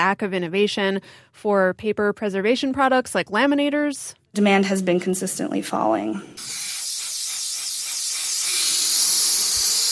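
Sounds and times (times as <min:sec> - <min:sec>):
speech: 0:00.0 - 0:06.7
helium machine inflating balloons: 0:06.3 - 0:09.9.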